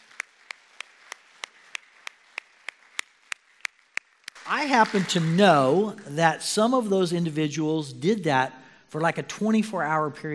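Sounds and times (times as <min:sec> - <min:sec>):
audience applause: 0:00.0 - 0:06.1
speech: 0:04.5 - 0:10.3.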